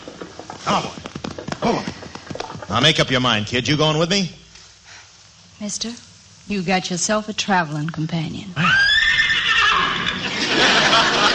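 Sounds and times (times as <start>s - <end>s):
speech: 0.7s - 1.0s, 1.7s - 2.0s, 2.7s - 4.4s, 5.6s - 8.8s
man imitating horse whinny: 8.6s - 10.2s
laughter: 9.8s - 11.3s.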